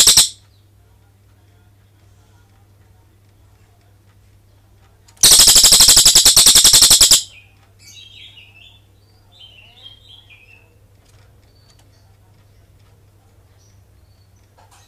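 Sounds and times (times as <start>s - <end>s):
cililin bird long rolling trill: 0.0s - 0.4s, 5.2s - 7.3s.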